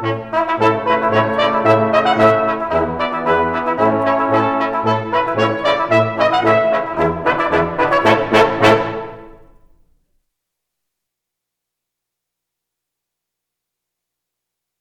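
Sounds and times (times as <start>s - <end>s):
waltz music: 0.0s - 9.7s.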